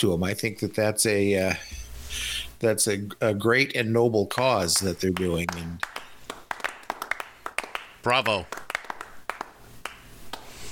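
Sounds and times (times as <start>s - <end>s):
speech: 0.0s - 6.0s, 8.0s - 8.6s
clapping sound effect: 4.4s - 10.6s.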